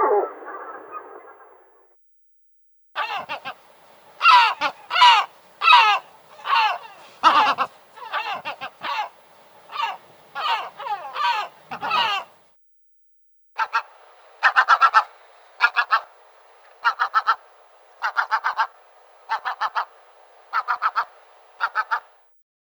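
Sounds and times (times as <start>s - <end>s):
gull calls: 3.0s - 12.4s, 13.6s - 22.2s.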